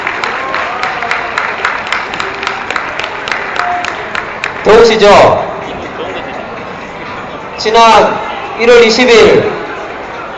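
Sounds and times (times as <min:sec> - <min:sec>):
audience applause: 0:00.0 - 0:04.7
speech: 0:04.7 - 0:05.5, 0:07.6 - 0:09.6.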